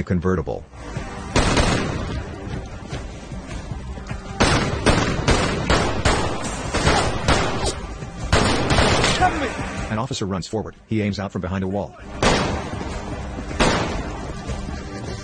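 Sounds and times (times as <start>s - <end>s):
speech: 0.0s - 1.1s, 9.2s - 12.5s
gunfire as a suspect shoots at police officers in a film scene: 1.3s - 2.2s, 4.4s - 9.8s, 12.1s - 14.6s.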